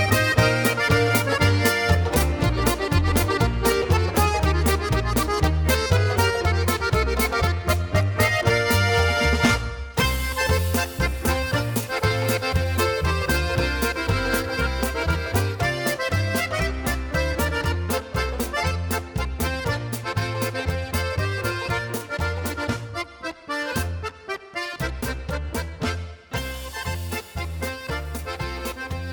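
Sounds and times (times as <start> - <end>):
polka music: 0.0 - 29.1.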